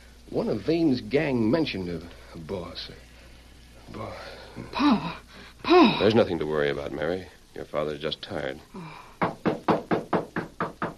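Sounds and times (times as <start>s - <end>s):
speech: 0.3s - 3.1s, 3.9s - 9.0s
knocking on a door: 9.2s - 10.9s.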